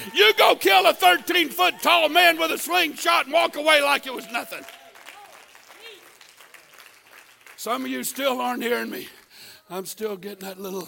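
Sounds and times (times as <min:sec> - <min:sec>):
speech: 0:00.4 - 0:04.8, 0:07.6 - 0:10.8
scattered hand claps from a crowd: 0:04.2 - 0:08.3.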